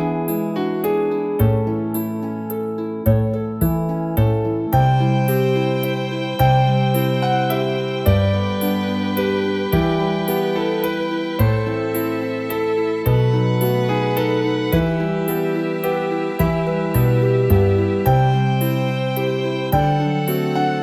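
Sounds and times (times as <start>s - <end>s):
celtic harp: 0.0s - 20.8s
piano: 0.0s - 20.8s
violin: 4.2s - 20.8s.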